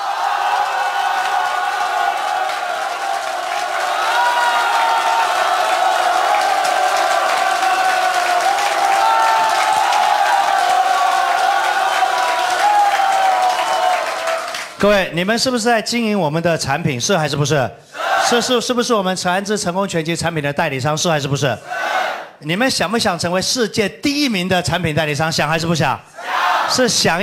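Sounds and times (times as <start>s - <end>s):
audience cheering and applauding: 0.0s - 15.0s
speech: 14.8s - 26.1s, 26.7s - 27.2s.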